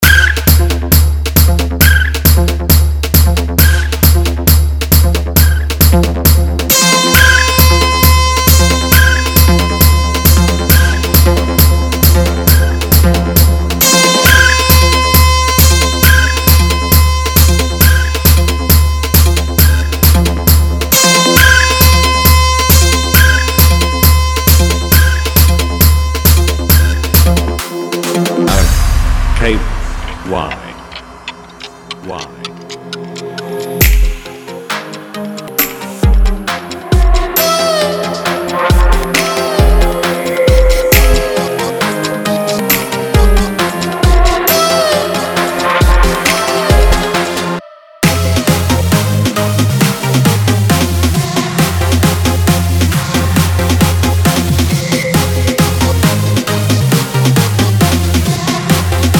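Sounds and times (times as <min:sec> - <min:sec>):
beat competition vibration mix: 0:00.0 - 0:59.1.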